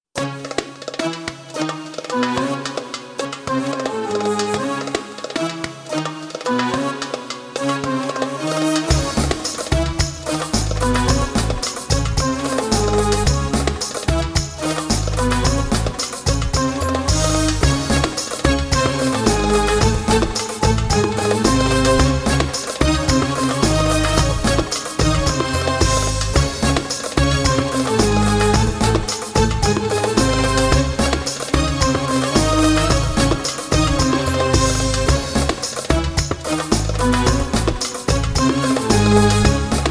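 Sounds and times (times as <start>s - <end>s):
Arabic music: 0.2s - 39.8s.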